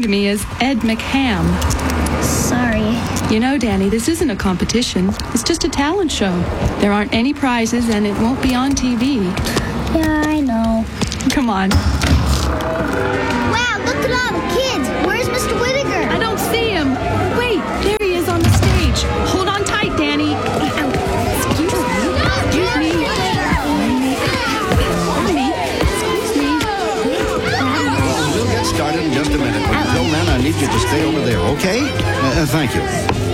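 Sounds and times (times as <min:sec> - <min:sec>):
speech: 0:00.0 - 0:15.6, 0:30.6 - 0:33.3
crowd chatter of about 100 people: 0:00.0 - 0:33.3
children shrieking and laughing: 0:13.0 - 0:18.0, 0:19.1 - 0:33.3.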